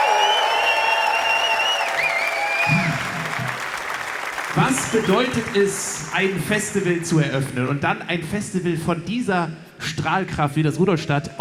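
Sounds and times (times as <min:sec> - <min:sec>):
crowd applauding a band member at the Rudolstadt open-air festival: 0:00.0 - 0:07.6
speech: 0:04.6 - 0:11.3.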